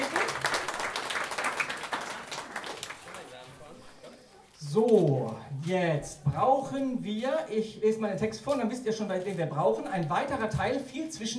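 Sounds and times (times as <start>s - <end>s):
audience applause: 0.0s - 3.5s
speech: 4.7s - 11.3s.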